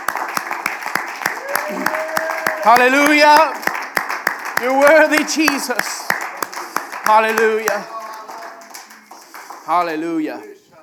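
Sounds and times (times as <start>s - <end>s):
crowd clapping in rhythm: 0.0s - 10.6s
speech: 2.6s - 3.6s, 4.6s - 5.9s, 7.1s - 8.0s, 9.7s - 10.6s
voices murmuring and calling out: 4.6s - 10.8s.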